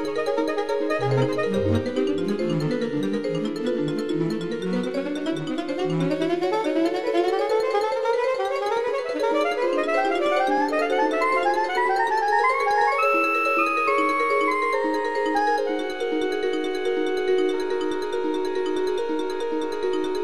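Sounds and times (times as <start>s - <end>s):
soprano saxophone in synth jazz piece: 0.0s - 2.2s, 4.9s - 17.8s
vibraphone in synth jazz piece: 0.0s - 6.9s, 9.4s - 20.2s.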